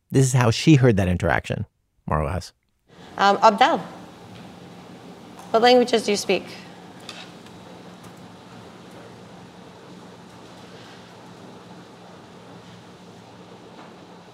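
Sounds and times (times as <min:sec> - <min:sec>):
speech: 0:00.1 - 0:04.0, 0:05.5 - 0:06.6
air purifier for COVID humming in a room: 0:02.9 - 0:14.3.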